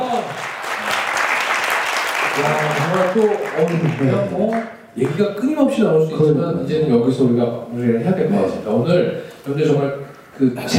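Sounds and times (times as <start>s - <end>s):
audience applause: 0.0s - 4.7s
speech: 2.4s - 10.7s.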